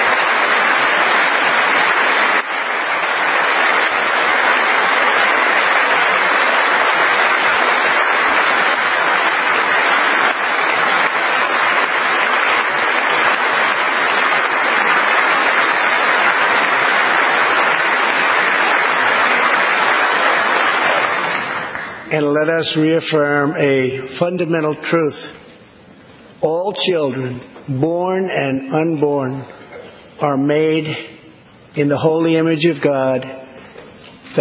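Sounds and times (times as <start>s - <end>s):
audience clapping: 0.0s - 22.4s
speech: 22.4s - 25.4s, 26.4s - 29.6s, 30.2s - 31.1s, 31.7s - 33.4s.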